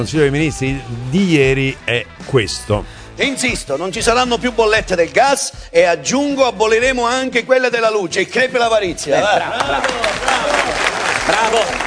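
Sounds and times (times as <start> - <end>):
speech: 0.0 - 11.8
laughter: 8.9 - 11.8
clapping: 9.5 - 11.8.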